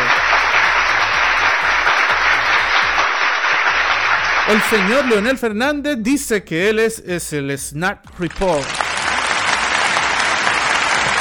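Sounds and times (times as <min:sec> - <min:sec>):
audience applause: 0:00.0 - 0:05.4, 0:08.3 - 0:11.1
speech: 0:04.5 - 0:08.9.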